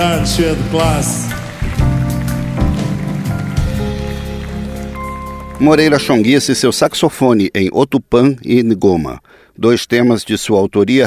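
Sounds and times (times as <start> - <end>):
speech: 0.0 - 1.2, 5.6 - 11.0
audience applause: 0.0 - 6.5.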